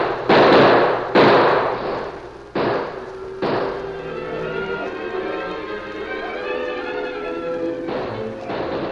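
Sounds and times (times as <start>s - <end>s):
gunshots in a shootout: 0.0s - 4.4s, 7.8s - 8.9s.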